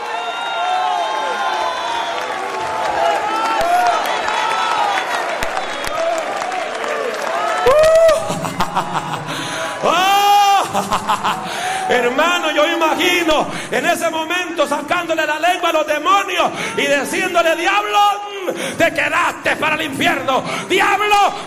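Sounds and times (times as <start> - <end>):
applause: 0.0 - 10.0
whoops: 0.0 - 10.7
crowd shouting and cheering praise: 0.0 - 21.4
laughter: 7.7 - 13.8
speech: 10.8 - 21.4.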